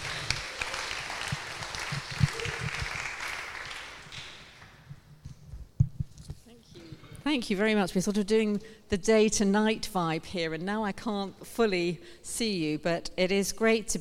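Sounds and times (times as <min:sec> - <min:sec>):
audience applause: 0:00.0 - 0:04.7
speech: 0:07.3 - 0:13.9.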